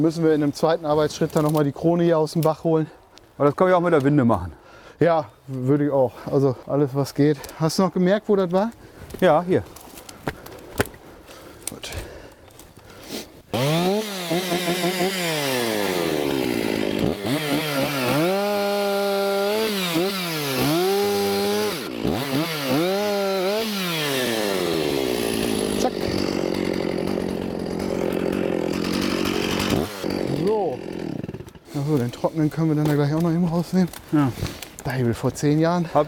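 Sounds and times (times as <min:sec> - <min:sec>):
speech: 0:00.0 - 0:10.4, 0:33.7 - 0:36.0
chainsaw revving and cutting into wood: 0:12.5 - 0:33.0.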